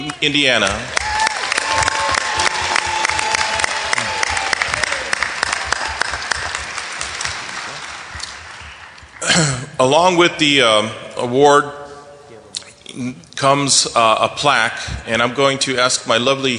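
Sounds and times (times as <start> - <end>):
speech: 0.2 - 1.0, 9.4 - 11.8, 13.0 - 16.5
audience applause for a National Federation of the Blind award winner: 0.6 - 9.4.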